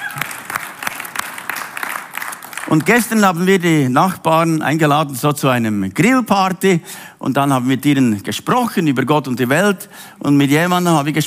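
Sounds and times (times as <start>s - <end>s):
audience applause: 0.0s - 3.1s
speech: 2.7s - 11.2s.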